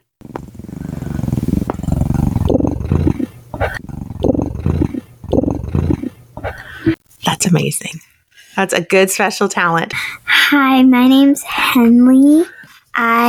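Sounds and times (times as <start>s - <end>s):
child imitating a kitten's purr: 0.7s - 6.6s
speech: 7.5s - 13.2s.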